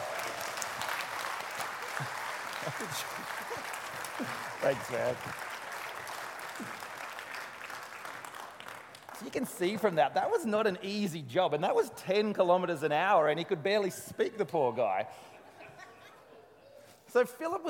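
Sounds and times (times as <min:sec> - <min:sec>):
audience clapping: 0:00.0 - 0:10.0
speech: 0:02.8 - 0:05.5, 0:06.6 - 0:06.8, 0:09.2 - 0:15.3, 0:17.2 - 0:17.6.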